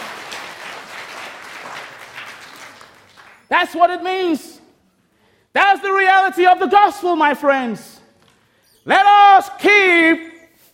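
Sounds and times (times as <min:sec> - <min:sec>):
audience clapping during a sermon: 0:00.0 - 0:03.5
speech: 0:03.5 - 0:04.6, 0:05.8 - 0:07.9, 0:08.8 - 0:10.3.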